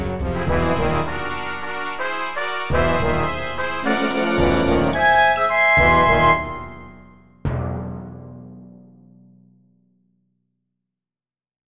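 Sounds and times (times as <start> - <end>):
scary Latin suite music: 0.3 - 9.2.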